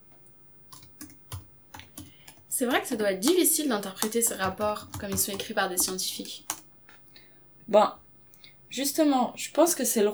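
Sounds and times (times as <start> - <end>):
keystrokes on a computer keyboard typing an email: 0.7 - 2.5, 3.2 - 6.7
speech: 2.6 - 6.5, 7.7 - 8.0, 8.7 - 10.1.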